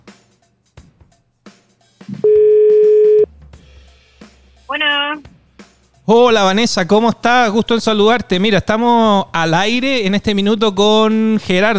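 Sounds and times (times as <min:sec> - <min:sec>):
telephone ringback beep while a call is being placed: 0:02.1 - 0:03.3
speech: 0:06.1 - 0:11.7.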